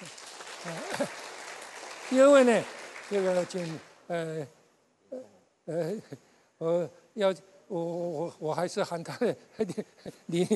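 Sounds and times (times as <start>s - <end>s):
audience applause: 0.0s - 4.0s
speech: 0.6s - 1.2s, 2.1s - 4.6s, 5.7s - 10.5s.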